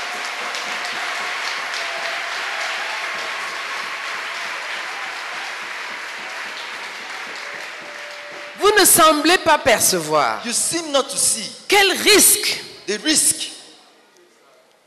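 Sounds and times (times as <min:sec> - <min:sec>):
church congregation clapping at a thanksgiving service: 0:00.0 - 0:09.6
speech: 0:08.8 - 0:13.5.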